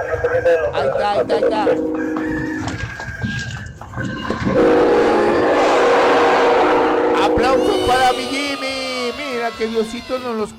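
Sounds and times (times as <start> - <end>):
speech: 0.0 - 2.4, 4.0 - 4.8, 7.4 - 8.7, 9.4 - 10.5
train whistle blowing: 4.6 - 8.6.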